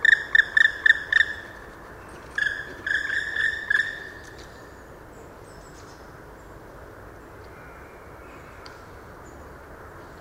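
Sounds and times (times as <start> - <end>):
black woodpecker calling in a park garden in Landshut: 0.0 - 4.4.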